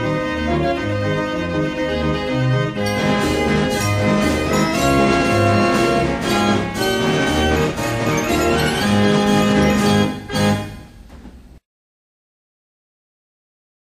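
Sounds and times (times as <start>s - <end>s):
barrel organ playing a march: 0.0s - 11.0s.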